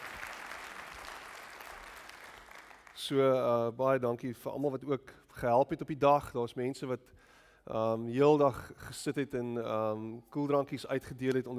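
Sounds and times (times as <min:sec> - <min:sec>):
audience applause: 0:00.0 - 0:03.0
speech: 0:03.0 - 0:11.5.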